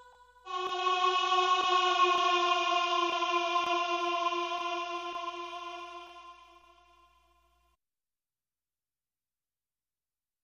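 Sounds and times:
evil children's choir: 0.0s - 7.3s.

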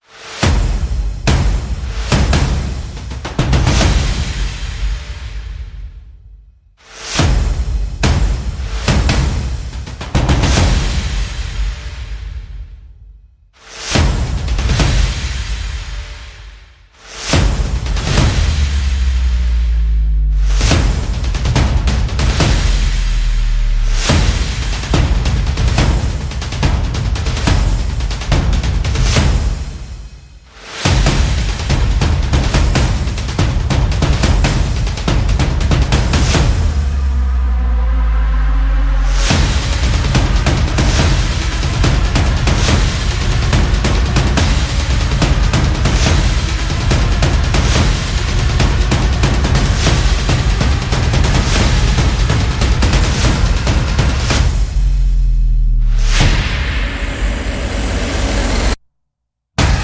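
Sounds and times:
percussion: 0.0s - 58.8s, 59.6s - 59.8s.

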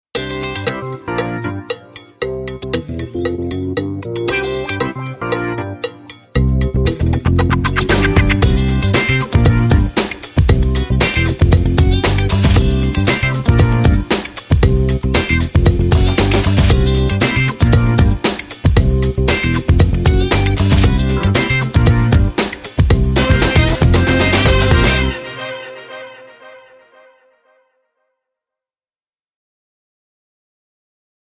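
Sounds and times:
short funk jazz rhythm: 0.2s - 26.0s.

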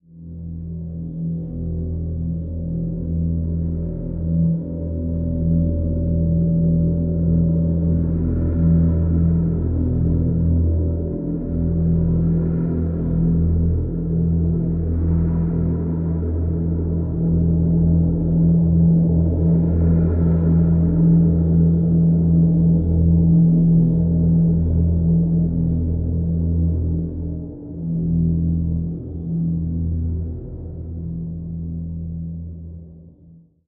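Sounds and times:
drone on E: 0.0s - 33.4s.

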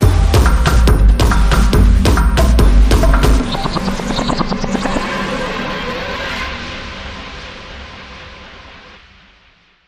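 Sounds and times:
dub music sting: 0.0s - 5.8s.

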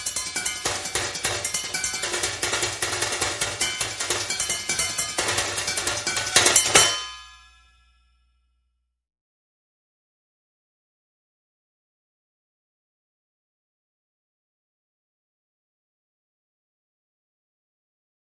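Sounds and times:
high drums: 0.0s - 7.5s.

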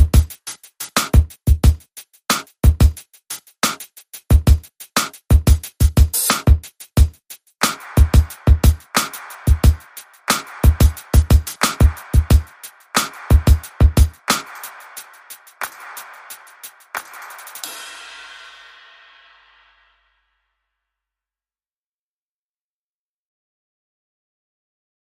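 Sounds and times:
beat: 0.0s - 3.0s, 3.6s - 19.8s.

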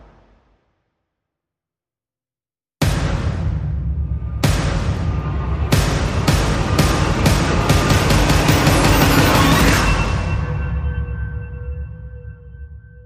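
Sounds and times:
percussion: 2.8s - 12.5s.

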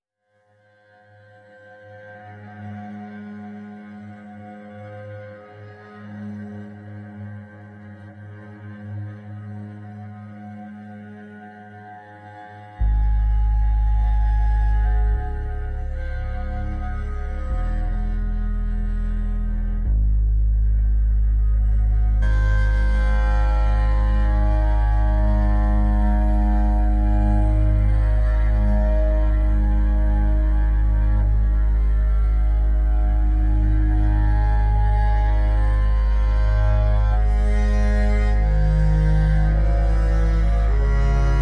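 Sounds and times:
ambience: 2.2s - 41.3s.

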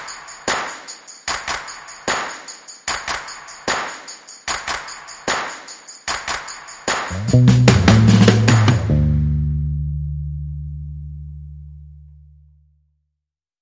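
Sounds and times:
rhythm and bass mix: 6.9s - 11.7s.

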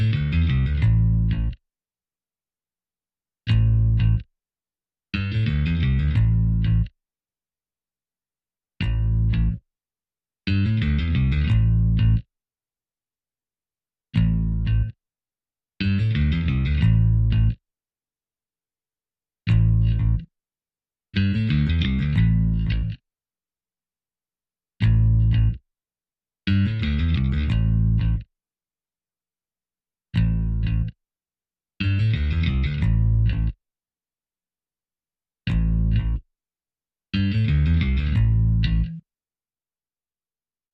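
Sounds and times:
bass: 0.0s - 1.6s, 3.5s - 4.3s, 5.2s - 7.0s, 8.8s - 9.7s, 10.5s - 12.3s, 14.1s - 15.0s, 15.8s - 17.6s, 19.4s - 20.3s, 21.2s - 23.0s, 24.8s - 25.7s, 26.5s - 28.3s, 30.1s - 31.0s, 31.8s - 33.6s, 35.5s - 36.3s, 37.2s - 39.1s.

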